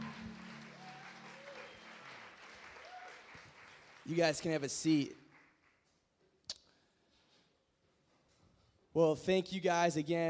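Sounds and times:
audience applause: 0.0 - 4.6
speech: 4.1 - 5.2, 9.0 - 10.2.

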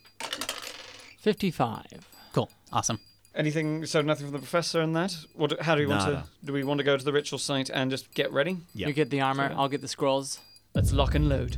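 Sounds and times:
dice rolling on a hard tabletop: 0.2 - 1.2
speech: 1.2 - 11.5.

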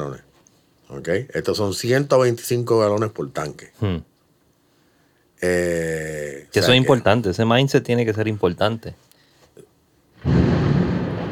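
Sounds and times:
speech: 0.0 - 0.3, 0.9 - 4.1, 5.4 - 9.0
thunder clap: 10.2 - 11.3.

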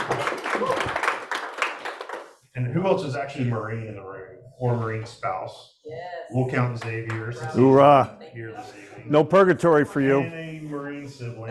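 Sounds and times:
small round of applause: 0.0 - 2.5, 6.6 - 7.8
speech: 2.6 - 11.4.

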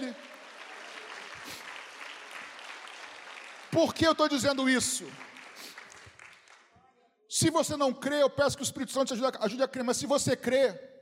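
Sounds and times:
audience applause: 0.0 - 6.7
speech: 3.8 - 5.3, 7.4 - 10.9.

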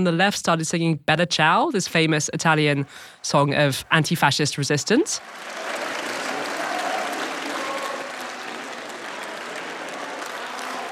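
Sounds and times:
speech: 0.0 - 5.8
far-right members of parliament clapping: 4.9 - 10.9.

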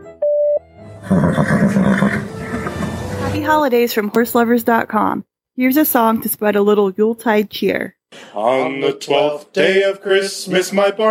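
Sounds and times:
voicemail tone: 0.1 - 3.6
speech: 1.0 - 2.0, 3.4 - 11.1.

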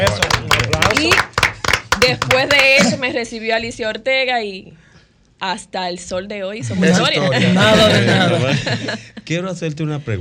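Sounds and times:
audience applause: 0.0 - 2.9
laughter: 1.8 - 3.2, 6.6 - 9.2
speech: 2.0 - 4.8, 5.4 - 10.2.

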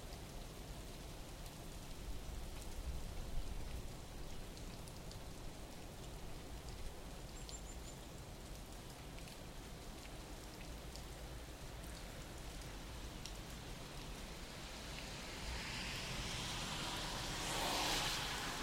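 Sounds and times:
morning rain: 0.0 - 18.6
car passing: 14.8 - 18.6.

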